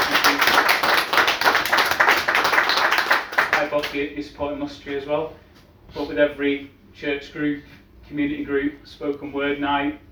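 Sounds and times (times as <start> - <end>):
audience applause: 0.0 - 3.8
speech: 3.8 - 10.0.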